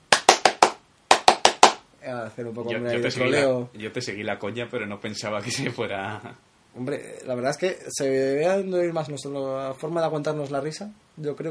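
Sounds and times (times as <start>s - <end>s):
hand clapping: 0.0s - 1.8s
speech: 2.1s - 11.5s.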